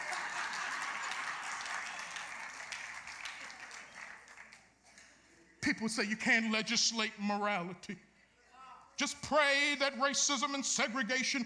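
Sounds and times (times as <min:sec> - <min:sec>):
crowd clapping: 0:00.0 - 0:05.2
speech: 0:05.7 - 0:08.1, 0:09.0 - 0:11.4.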